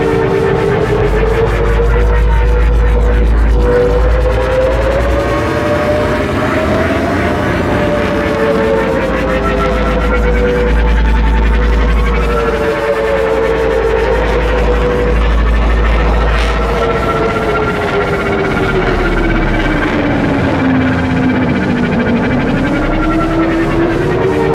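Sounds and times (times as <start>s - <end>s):
drop ship engine: 0.0s - 24.5s.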